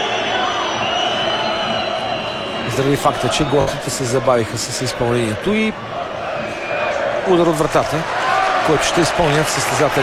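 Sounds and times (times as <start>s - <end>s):
football crowd booing and whistling during a throw-in at Levski versus Salzburg: 0.0s - 4.3s, 5.8s - 10.0s
speech: 2.8s - 6.0s, 7.3s - 10.0s.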